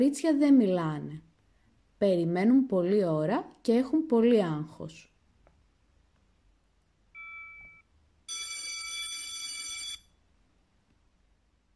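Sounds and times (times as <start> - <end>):
speech: 0.0 - 1.3, 2.0 - 5.1
bell ringing: 7.2 - 10.1.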